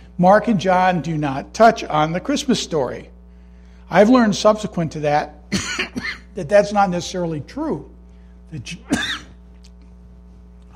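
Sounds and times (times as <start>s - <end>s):
low steady hum: 0.0s - 10.7s
speech: 0.2s - 3.1s, 3.9s - 9.1s
person coughing: 5.5s - 6.3s, 8.8s - 9.4s.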